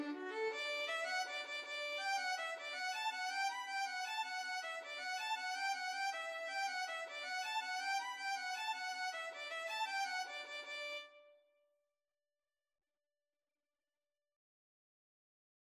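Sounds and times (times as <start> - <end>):
violin: 0.0 - 11.2.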